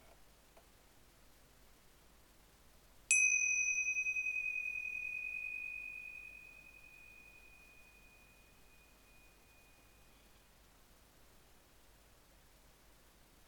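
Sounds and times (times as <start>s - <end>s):
cymbal: 3.1s - 10.4s.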